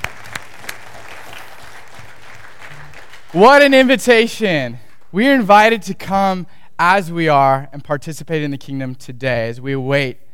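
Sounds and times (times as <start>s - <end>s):
audience clapping: 0.0s - 5.2s
speech: 3.3s - 10.2s.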